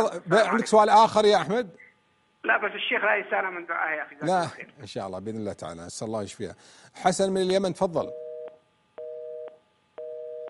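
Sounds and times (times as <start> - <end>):
speech: 0.0 - 1.8, 2.4 - 8.2
telephone line tone after a call is cut off: 8.1 - 10.4.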